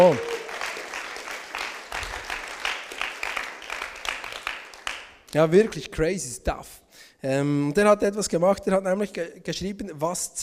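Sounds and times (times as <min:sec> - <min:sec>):
speech: 0:00.0 - 0:00.3, 0:05.3 - 0:10.4
audience applause: 0:00.0 - 0:05.1.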